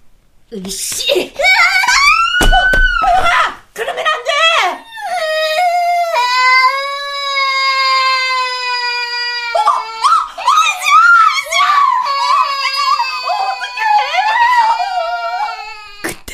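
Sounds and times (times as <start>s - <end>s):
speech: 0.5s - 1.5s
child screaming and sobbing: 1.4s - 3.6s, 4.8s - 16.1s
thumps of a child falling: 1.9s - 3.5s.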